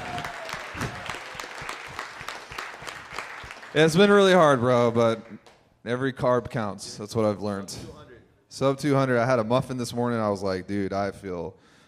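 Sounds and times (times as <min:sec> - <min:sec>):
round of applause: 0:00.0 - 0:05.6
speech: 0:03.8 - 0:11.7.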